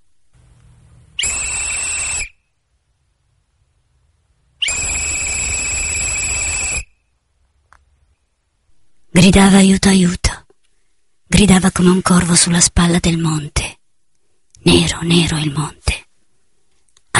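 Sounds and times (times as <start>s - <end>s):
farewell whistle: 1.2s - 2.6s, 4.6s - 7.1s
speech: 9.2s - 10.2s, 11.3s - 13.8s, 14.6s - 16.0s.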